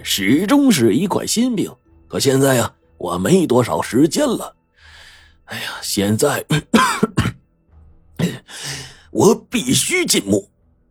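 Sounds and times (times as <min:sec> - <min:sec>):
speech: 0:00.0 - 0:04.6, 0:05.5 - 0:07.4, 0:08.2 - 0:10.5
deep muffled coughing: 0:06.5 - 0:07.4, 0:08.2 - 0:09.3.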